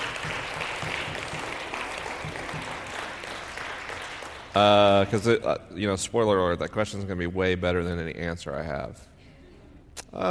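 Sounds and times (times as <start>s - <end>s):
audience applause: 0.0s - 5.0s
speech: 4.6s - 9.1s.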